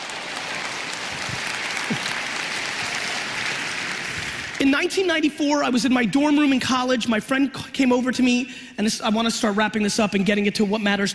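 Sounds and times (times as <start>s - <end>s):
audience applause: 0.0s - 4.6s
speech: 4.6s - 11.1s.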